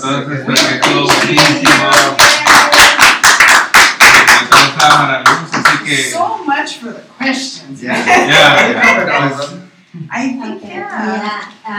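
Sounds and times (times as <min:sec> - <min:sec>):
speech: 0:00.0 - 0:02.3, 0:04.8 - 0:11.7
audience applause: 0:00.5 - 0:05.8
laughter: 0:07.9 - 0:09.6.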